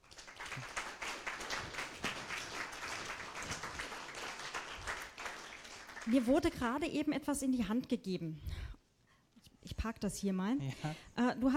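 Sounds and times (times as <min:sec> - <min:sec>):
audience applause: 0:00.0 - 0:06.4
speech: 0:06.1 - 0:08.7, 0:09.8 - 0:11.5.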